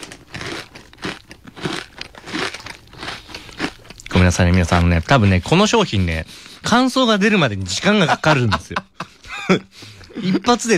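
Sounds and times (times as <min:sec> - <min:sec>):
chewing: 0:00.0 - 0:05.2
crunchy bites into a mini croquette: 0:00.0 - 0:05.2
speech: 0:04.2 - 0:08.9, 0:09.5 - 0:10.7
laughter: 0:07.8 - 0:10.6.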